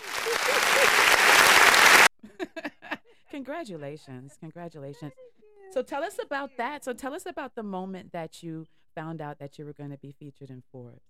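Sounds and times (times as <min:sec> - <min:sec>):
applause sound effect: 0:00.0 - 0:02.1
laughter: 0:00.0 - 0:03.0
speech: 0:03.4 - 0:11.0.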